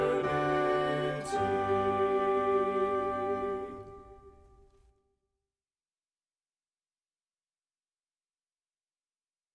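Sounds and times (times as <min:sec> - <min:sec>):
vocal and instrumental hymns: 0:00.0 - 0:04.5.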